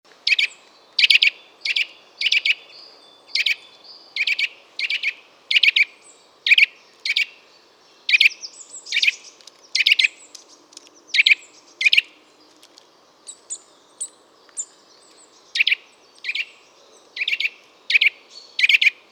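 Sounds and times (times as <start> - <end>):
Sitta europaea Eurasian nuthatch calling: 0.3 - 7.4, 8.0 - 12.2, 13.3 - 19.0.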